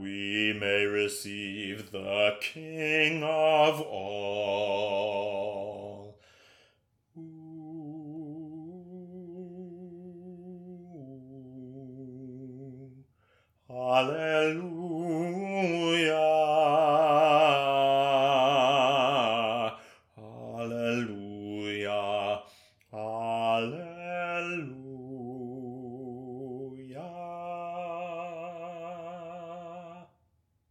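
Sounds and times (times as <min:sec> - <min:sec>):
bass voice singing a hymn: 0:00.0 - 0:06.5, 0:07.1 - 0:30.2.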